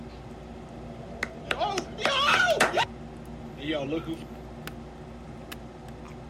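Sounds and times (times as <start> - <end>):
clap: 1.2 - 2.9.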